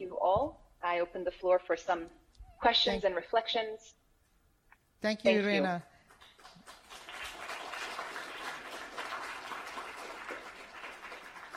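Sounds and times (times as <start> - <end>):
speech: 0.3 - 4.0, 5.0 - 5.9
audience applause: 6.1 - 11.5.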